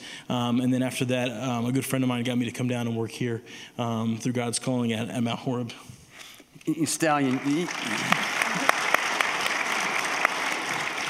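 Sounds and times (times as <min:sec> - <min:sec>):
speech: 0:00.3 - 0:05.9, 0:06.6 - 0:08.2
applause: 0:07.2 - 0:11.0.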